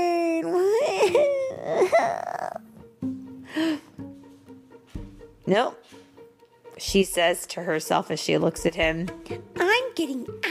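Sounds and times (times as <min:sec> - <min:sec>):
reader of a children's book imitating a whining child: 0:00.1 - 0:02.7
speech: 0:05.5 - 0:06.0, 0:06.8 - 0:10.4.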